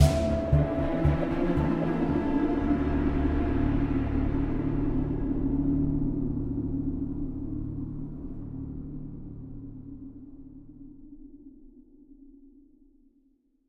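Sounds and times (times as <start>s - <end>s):
string instrument: 0.0s - 8.5s.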